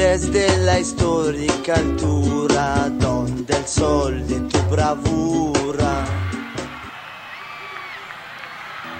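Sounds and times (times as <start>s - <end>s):
speech: 0.1s - 6.4s
large stadium crowd shouting and roaring: 6.0s - 8.9s.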